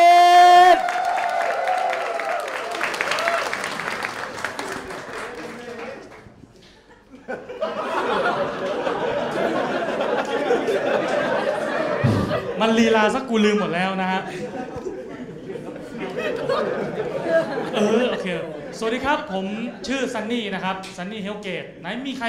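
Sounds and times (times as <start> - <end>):
crowd whoops: 0.0 - 4.0
audience clapping and cheering for comedian: 0.0 - 6.7
laughter: 3.7 - 19.9
speech: 12.7 - 14.8, 16.5 - 22.2.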